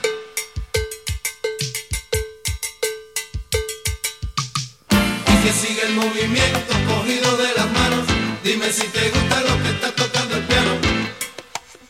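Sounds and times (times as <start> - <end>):
salsa cowbell playing: 0.0 - 5.7
speech: 5.4 - 7.7, 8.4 - 10.8.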